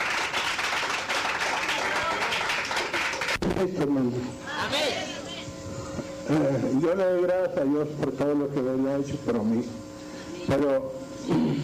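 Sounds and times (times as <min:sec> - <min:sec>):
audience applause: 0:00.0 - 0:03.4
speech: 0:03.6 - 0:05.1, 0:06.3 - 0:09.8, 0:10.5 - 0:11.6.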